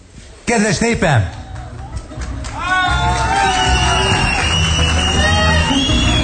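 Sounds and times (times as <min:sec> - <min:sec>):
speech: 0:00.5 - 0:01.4
crowd applauding: 0:01.3 - 0:06.2.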